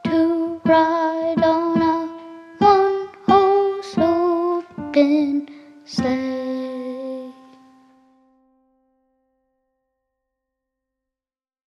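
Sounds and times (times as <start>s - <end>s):
Christmas song: 0.0s - 8.8s.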